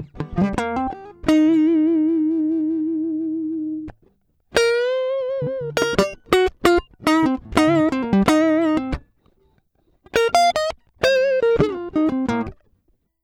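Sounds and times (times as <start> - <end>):
guitar line: 0.0 - 9.1, 10.0 - 12.7.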